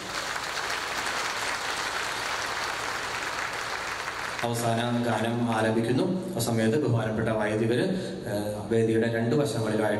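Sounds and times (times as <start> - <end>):
audience applause at the Kreupasanam Marian Convention at Vallarpadam: 0.0 - 4.5
speech: 4.4 - 9.9.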